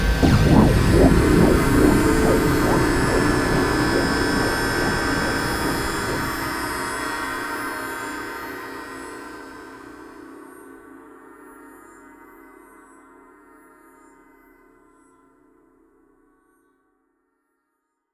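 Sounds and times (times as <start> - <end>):
airburst explosion: 0.1 - 7.6.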